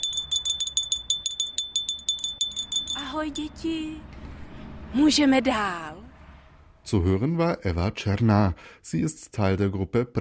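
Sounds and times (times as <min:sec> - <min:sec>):
doorbell ringing: 0:00.0 - 0:03.6
speech: 0:03.2 - 0:04.1, 0:04.9 - 0:06.1, 0:06.8 - 0:10.1.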